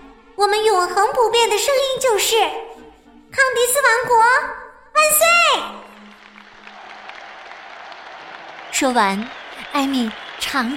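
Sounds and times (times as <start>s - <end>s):
speech: 0.4s - 5.8s, 8.8s - 10.7s
applause: 5.9s - 10.7s
crowd cheering: 6.0s - 10.7s.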